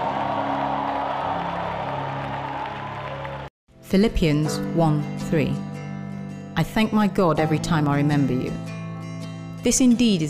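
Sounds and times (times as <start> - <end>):
audience clapping: 0.0 - 3.5
speech: 3.9 - 5.7, 6.6 - 8.7, 9.6 - 10.2.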